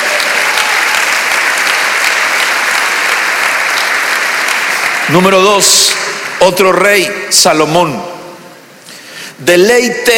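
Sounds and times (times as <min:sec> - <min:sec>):
big applause: 0:00.0 - 0:07.5
speech: 0:05.1 - 0:08.1, 0:09.4 - 0:10.1.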